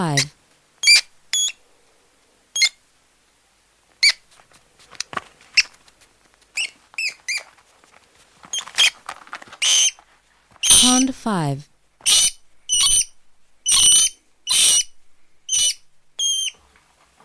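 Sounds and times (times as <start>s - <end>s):
speech: 0.0s - 0.4s, 11.0s - 11.7s
rat squeaks: 0.0s - 1.6s, 2.6s - 2.8s, 4.0s - 4.2s, 6.6s - 7.5s, 8.5s - 9.0s, 9.6s - 10.0s, 10.6s - 11.0s, 12.0s - 14.9s, 15.5s - 16.6s
harsh scuffling: 4.2s - 11.0s.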